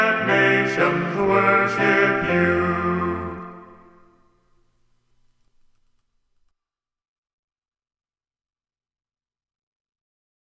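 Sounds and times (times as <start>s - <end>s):
choir singing: 0.0s - 4.3s.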